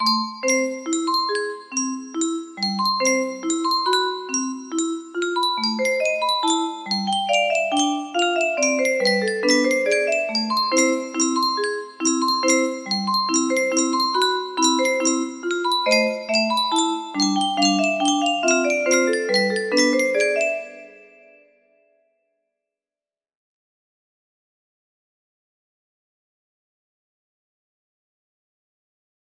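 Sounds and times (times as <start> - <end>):
melody: 0.0 - 21.6.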